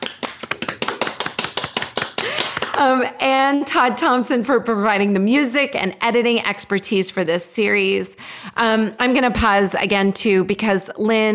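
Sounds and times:
small audience clapping: 0:00.0 - 0:02.9
speech: 0:02.8 - 0:11.3.

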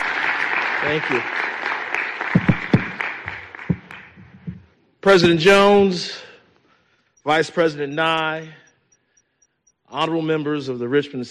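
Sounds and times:
audience clapping: 0:00.0 - 0:04.7
speech: 0:00.8 - 0:01.5, 0:05.0 - 0:06.2, 0:07.2 - 0:08.6, 0:09.9 - 0:11.2.

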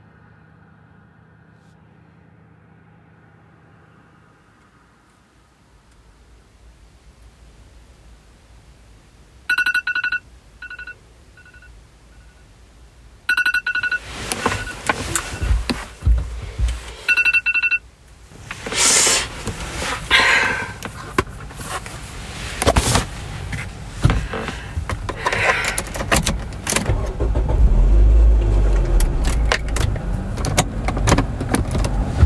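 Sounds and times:
phone alarm ringing in melodic bursts: 0:09.5 - 0:12.4, 0:13.3 - 0:14.8, 0:17.1 - 0:17.8
rustling and clattering: 0:13.7 - 0:17.4, 0:18.1 - 0:32.2.

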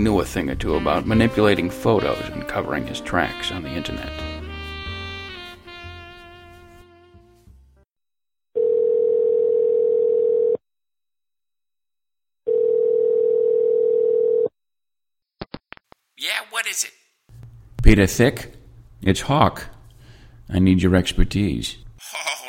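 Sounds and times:
speech: 0:00.0 - 0:04.3, 0:17.9 - 0:19.7, 0:20.5 - 0:22.3
music: 0:00.0 - 0:07.9
telephone ringing on outgoing call: 0:08.6 - 0:10.6, 0:12.5 - 0:14.5.

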